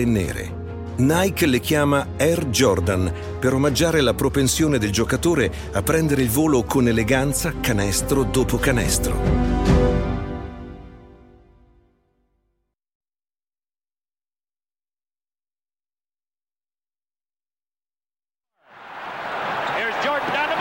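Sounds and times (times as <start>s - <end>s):
speech: 0.0s - 9.8s
basketball stadium crowd cheering: 18.7s - 20.5s.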